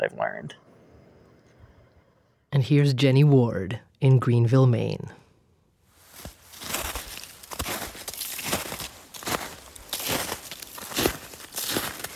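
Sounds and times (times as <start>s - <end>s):
speech: 0.0s - 0.7s, 2.5s - 5.2s
footsteps crunching across a frozen pond surface in northern Maine: 6.0s - 12.1s.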